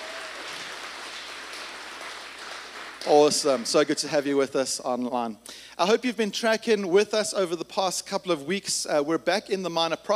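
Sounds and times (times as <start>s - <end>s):
audience applause: 0.0s - 4.0s
speech: 3.0s - 10.1s.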